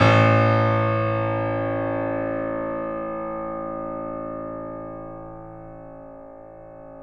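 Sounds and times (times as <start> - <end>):
piano: 0.0 - 7.0.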